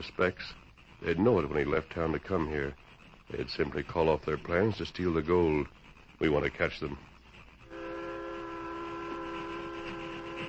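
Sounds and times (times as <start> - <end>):
speech: 0.0 - 7.1
train climbing a slope rumbling: 0.0 - 10.4
sustained whistle-like drone: 7.7 - 10.4.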